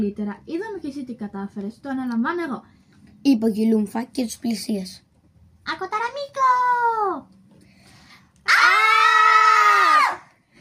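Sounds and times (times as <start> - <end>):
speech: 0.0 - 5.0, 5.6 - 7.4
person imitating an alien shrieking: 8.5 - 10.2.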